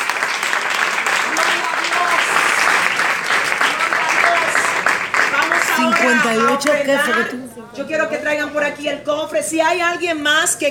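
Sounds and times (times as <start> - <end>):
audience applause: 0.0 - 7.3
speech: 6.0 - 10.7.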